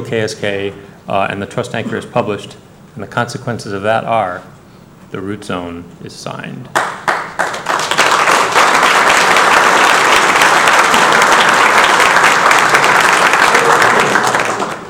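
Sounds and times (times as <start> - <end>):
speech: 0.0 - 7.0
audience applause: 6.8 - 14.8.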